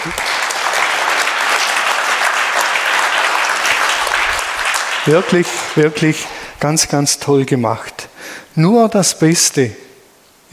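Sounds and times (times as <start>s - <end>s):
speech: 0.0s - 0.4s, 5.0s - 9.9s
audience applause: 0.0s - 6.6s.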